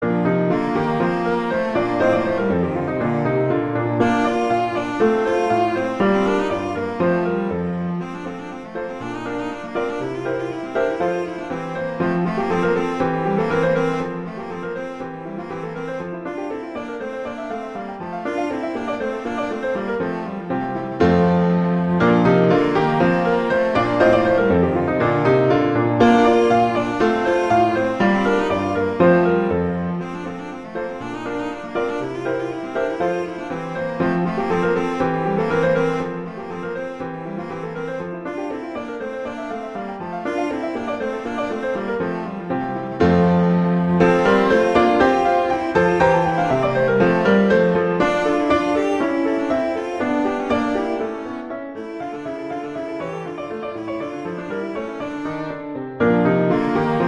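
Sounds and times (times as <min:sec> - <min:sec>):
allegro classical piece: 0:00.0 - 0:57.0.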